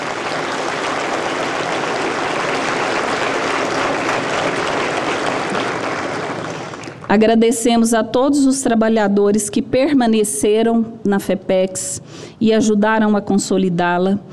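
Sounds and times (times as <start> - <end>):
audience applause: 0.0 - 7.1
speech: 7.1 - 14.3.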